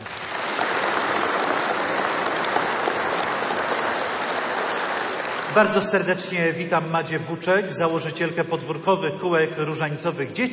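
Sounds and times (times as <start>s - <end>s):
audience applause: 0.0s - 6.1s
speech: 5.6s - 10.5s.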